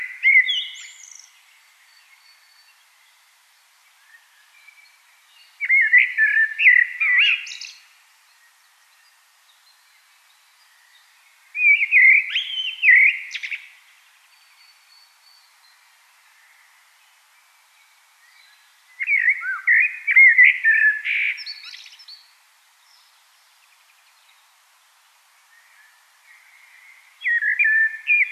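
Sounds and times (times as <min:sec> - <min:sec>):
common blackbird singing: 0:00.0 - 0:02.7, 0:04.1 - 0:07.8, 0:11.6 - 0:13.8, 0:18.2 - 0:22.3, 0:25.6 - 0:28.3.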